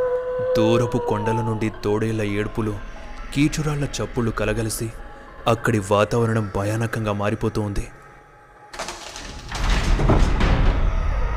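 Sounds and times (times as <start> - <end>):
speech: 0.4 - 8.0
door of a dark dusty old mansion opening in an audio drama: 8.8 - 11.2.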